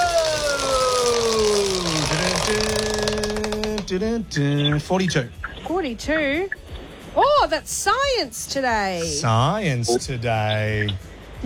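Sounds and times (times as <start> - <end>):
large game show prize wheel spinning with ratcheting pointer clicks: 0.0 - 3.9
speech: 3.9 - 6.6, 7.2 - 11.1.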